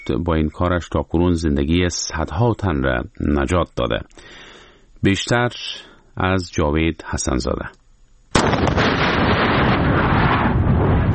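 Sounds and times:
speech: 0.0 - 7.8
landmine detonated by a police officer on the Uruzgan–Kandahar highway: 8.3 - 11.1.

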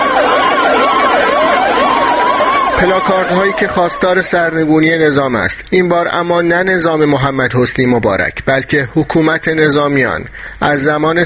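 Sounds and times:
ambulance sirens at a street protest in Egypt against military rule: 0.0 - 5.0
low traffic rumble: 0.0 - 5.6
speech: 2.8 - 11.2.

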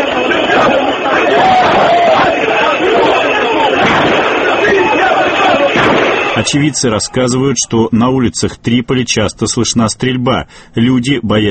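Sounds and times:
street protest crowd shouting and chanting: 0.0 - 7.2
speech: 6.4 - 11.5.

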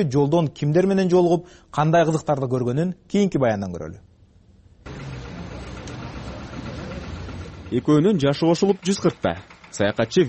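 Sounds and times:
speech: 0.0 - 4.1, 7.7 - 10.2
old-model 56-year-old tractor engine running: 4.8 - 10.2.

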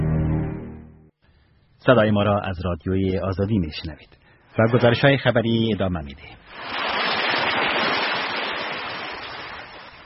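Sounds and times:
speech: 1.8 - 6.9
roaring water of the flooding Panjshir river: 6.5 - 10.0.

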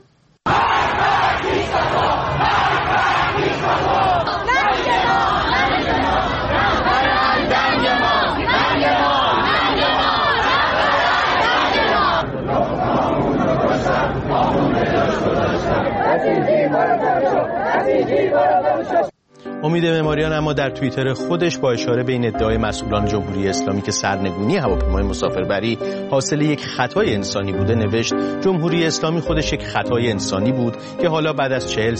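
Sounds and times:
protest crowd chanting slogans: 0.5 - 19.1
speech: 16.2 - 31.9.

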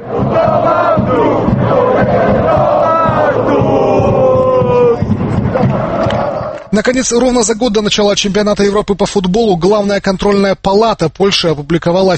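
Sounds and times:
football fans chanting in a stadium: 0.0 - 6.7
speech: 6.7 - 12.1.

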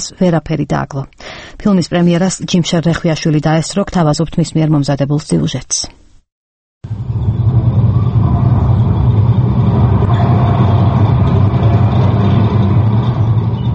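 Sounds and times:
speech: 0.0 - 6.0
tank with raised gun barrel rumbling forward: 6.9 - 13.7.

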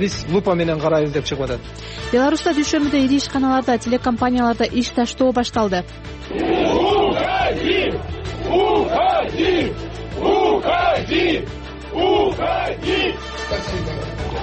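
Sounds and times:
speech: 0.0 - 14.0
large crowd chanting: 6.3 - 13.3.

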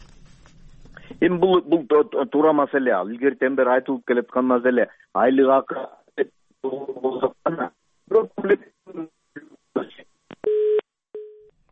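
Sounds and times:
speech: 1.2 - 9.1
telephone busy tone after a dropped call connection: 10.4 - 11.5.

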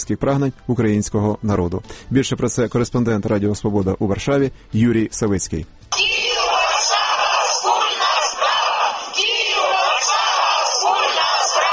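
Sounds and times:
speech: 0.0 - 6.4
marching crowd shouting slogans: 5.9 - 11.7.

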